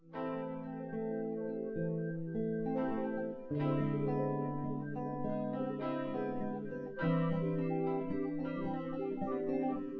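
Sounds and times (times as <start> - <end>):
synth: 0.3 - 9.9.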